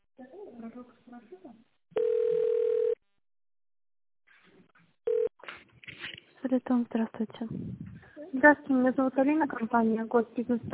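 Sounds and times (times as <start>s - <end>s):
speech: 0.6s - 2.1s, 6.4s - 10.7s
telephone beep signal: 2.0s - 3.0s.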